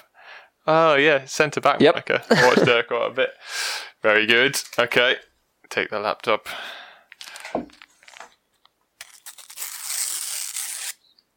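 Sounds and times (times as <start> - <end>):
speech: 0.7 - 6.8
sticker packet being torn open: 7.2 - 8.4, 9.0 - 11.0.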